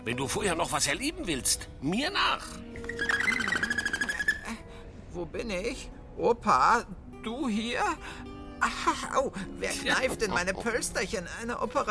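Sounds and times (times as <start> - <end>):
speech: 0.0 - 3.2, 5.2 - 11.8
eagle owl hooting: 2.8 - 4.6
steady high whistling tone: 2.8 - 4.6.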